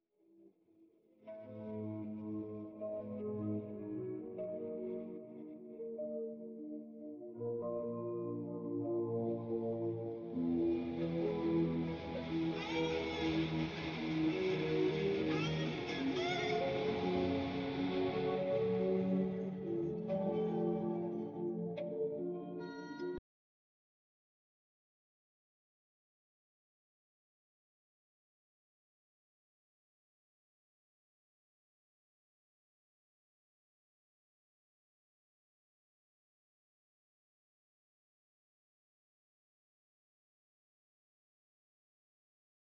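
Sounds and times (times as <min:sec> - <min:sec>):
noise: 0:01.2 - 0:22.6.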